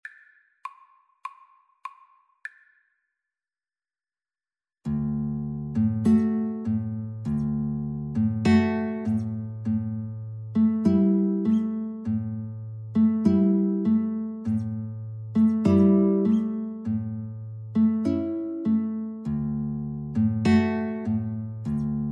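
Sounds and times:
guitar duet: 0:04.9 - 0:22.1.

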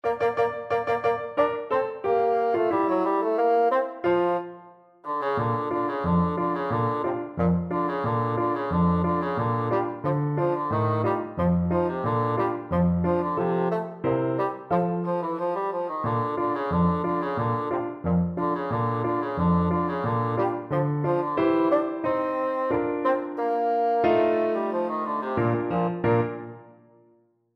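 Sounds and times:
bassoon playing a march: 0:00.0 - 0:26.6.

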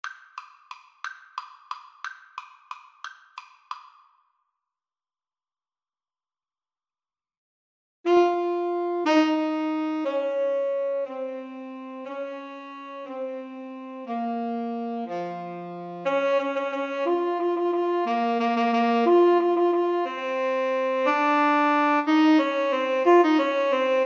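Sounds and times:
alto and tenor saxophone duet: 0:08.1 - 0:24.0.

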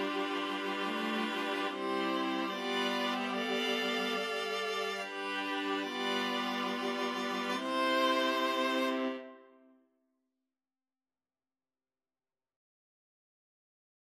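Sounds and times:
viola ensemble: 0:00.0 - 0:09.5.

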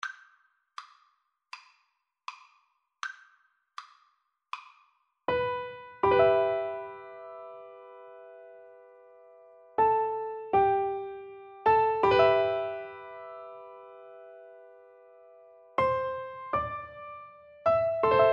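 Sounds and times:
piano duet: 0:05.3 - 0:18.3.

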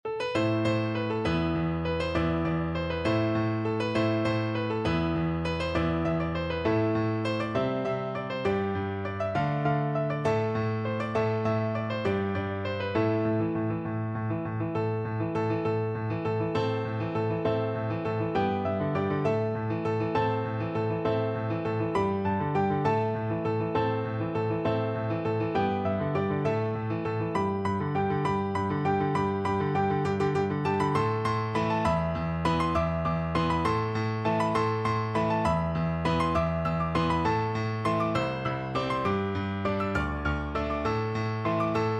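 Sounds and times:
pirate-themed piano duet: 0:00.0 - 0:41.9.

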